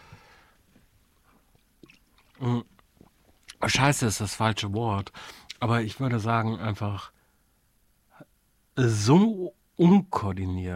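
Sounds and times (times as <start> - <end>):
faint mouth and handling noises: 0.7 - 3.6
gulp of beer: 1.5 - 3.6
speech: 2.4 - 2.7, 3.7 - 7.2, 8.8 - 10.7.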